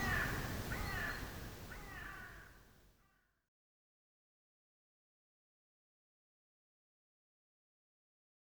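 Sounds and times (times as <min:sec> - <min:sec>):
mixed woodland soundscape in early spring: 0:00.0 - 0:02.6.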